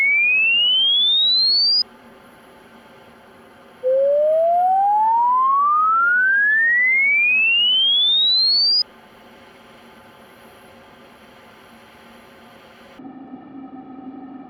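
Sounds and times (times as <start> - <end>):
frequency sweep 500 to 5 kHz: 0.0 - 1.8, 3.8 - 8.8.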